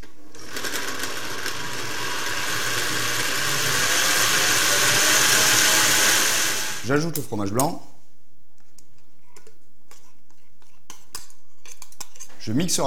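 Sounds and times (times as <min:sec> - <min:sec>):
blender motor whirring while mixing ingredients: 0:00.2 - 0:06.9
speech: 0:06.9 - 0:07.9, 0:12.5 - 0:12.8.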